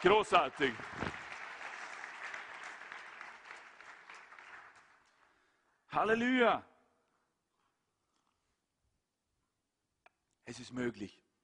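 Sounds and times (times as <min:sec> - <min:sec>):
speech: 0:00.0 - 0:01.0, 0:05.9 - 0:06.7, 0:10.5 - 0:11.2
audience applause: 0:00.0 - 0:05.2.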